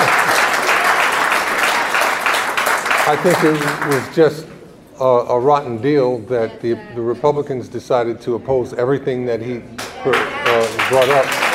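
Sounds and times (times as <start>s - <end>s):
crowd applauding: 0.0s - 4.4s, 9.8s - 11.5s
speech: 3.1s - 11.5s.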